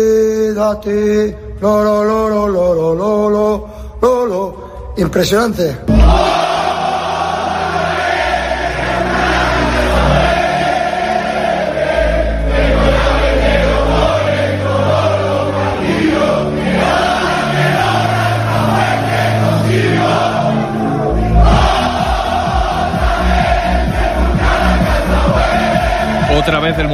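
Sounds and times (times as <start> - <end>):
speech: 0.0 - 6.5, 26.4 - 26.9
football fans shouting and chanting in celebration: 5.9 - 26.9
deep booming beat: 21.4 - 26.9.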